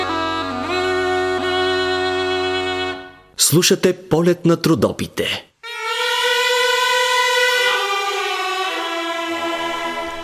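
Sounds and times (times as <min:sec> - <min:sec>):
Bulgarian gaida bagpipe playing over a steady drone: 0:00.0 - 0:03.1, 0:05.6 - 0:10.2
speech: 0:03.5 - 0:05.5.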